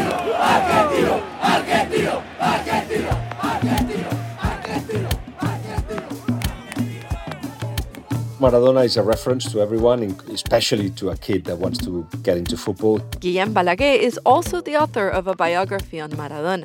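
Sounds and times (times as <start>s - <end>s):
stadium crowd roaring and cheering: 0.0s - 8.5s
speech: 8.4s - 16.6s.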